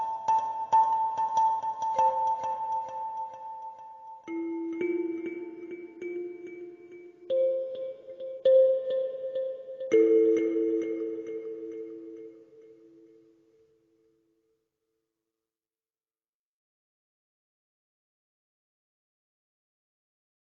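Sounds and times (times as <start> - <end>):
kalimba with delay echo: 0.0 - 14.2.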